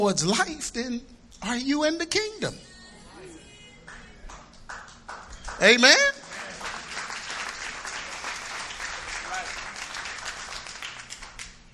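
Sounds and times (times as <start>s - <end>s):
speech: 0.0s - 2.7s, 5.6s - 6.2s
audience clapping: 3.8s - 11.7s.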